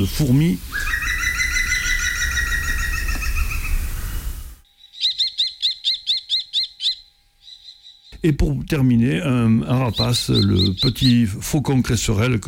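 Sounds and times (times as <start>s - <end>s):
speech: 0.0s - 1.1s, 8.2s - 12.4s
green woodpecker call: 0.7s - 8.2s, 9.7s - 11.3s.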